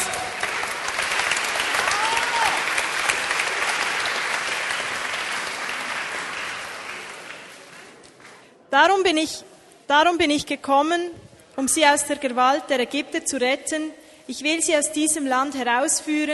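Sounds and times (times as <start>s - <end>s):
audience applause: 0.0s - 8.4s
speech: 8.7s - 16.3s.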